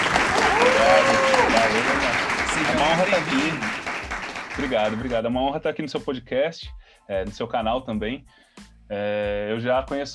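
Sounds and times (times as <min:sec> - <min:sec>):
voices and cheering: 0:00.0 - 0:03.8
round of applause: 0:00.0 - 0:05.2
speech: 0:02.8 - 0:03.9, 0:04.6 - 0:10.1.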